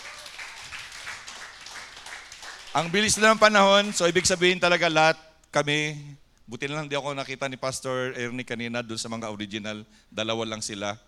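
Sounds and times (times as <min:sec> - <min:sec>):
church congregation applauding graduates at an anniversary service: 0:00.0 - 0:04.6
speech: 0:02.8 - 0:11.0.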